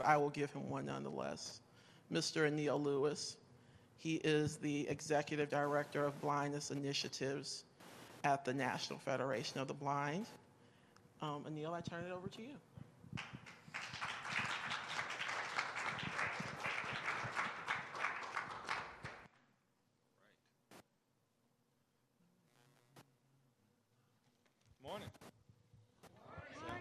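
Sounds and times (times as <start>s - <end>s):
speech: 0.0s - 3.4s, 4.0s - 10.4s, 11.2s - 13.4s
audience applause: 13.2s - 19.3s.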